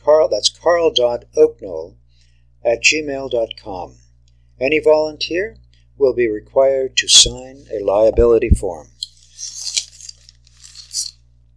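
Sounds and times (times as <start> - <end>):
low steady hum: 0.0 - 11.5
speech: 0.3 - 2.0, 2.6 - 4.0, 4.6 - 9.7
newspaper page turned: 9.2 - 11.1.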